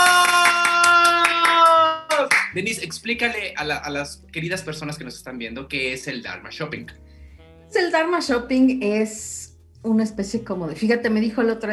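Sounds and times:
hands clapping: 0.0s - 3.5s
sustained tonal music bed: 2.4s - 11.7s
speech: 2.6s - 7.0s, 7.7s - 11.7s.

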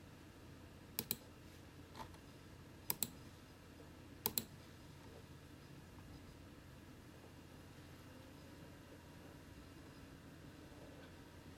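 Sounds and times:
personal computer humming and whirring: 0.0s - 11.5s
computer mouse clicking: 1.0s - 1.2s, 2.9s - 3.2s, 4.2s - 4.5s
gentle typing on keyboard: 1.0s - 1.2s.

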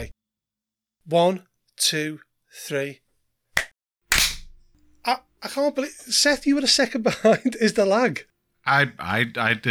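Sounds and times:
speech: 1.0s - 3.0s, 5.0s - 9.6s
hand claps: 3.6s - 4.7s.

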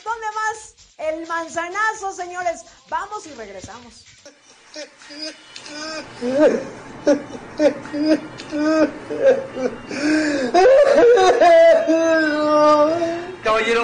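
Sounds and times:
speech: 1.1s - 13.8s
man crying and whimpering: 4.4s - 13.4s
laughter: 10.6s - 13.0s.

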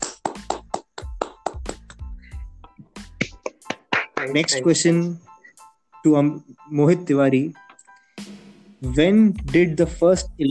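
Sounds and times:
clapping: 0.0s - 2.0s, 3.2s - 4.4s
speech: 4.2s - 5.3s, 6.0s - 7.6s, 8.8s - 10.4s.

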